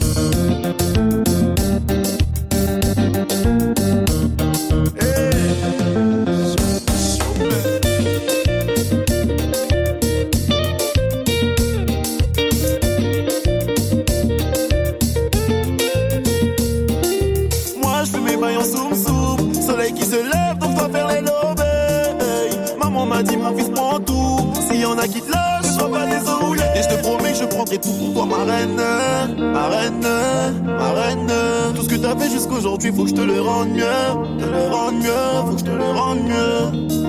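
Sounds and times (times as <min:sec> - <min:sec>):
ragga dancehall sega music: 0:00.0 - 0:37.0.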